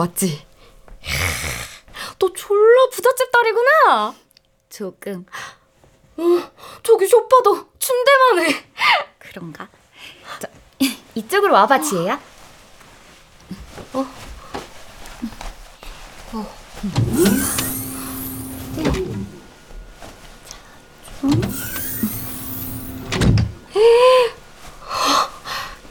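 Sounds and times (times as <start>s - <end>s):
speech: 0.0s - 1.5s, 2.2s - 5.5s, 6.2s - 12.3s, 13.9s - 14.3s, 16.3s - 17.6s
automatic door opening inside a house: 16.9s - 24.0s.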